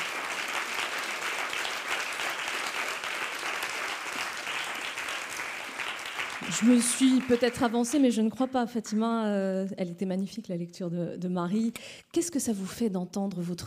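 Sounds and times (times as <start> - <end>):
audience applause: 0.0 - 8.1
speech: 6.5 - 13.6.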